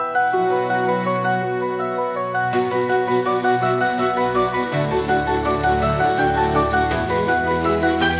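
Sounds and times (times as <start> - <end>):
synth progression: 0.1 - 8.1.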